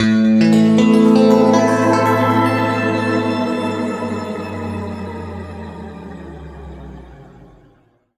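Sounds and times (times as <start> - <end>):
guitar chords in A: 0.4 - 7.2.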